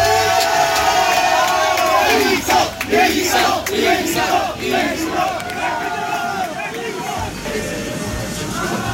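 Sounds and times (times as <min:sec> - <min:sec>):
crowd of cycling fans chanting and cheering in Barcelona: 0:00.0 - 0:08.9.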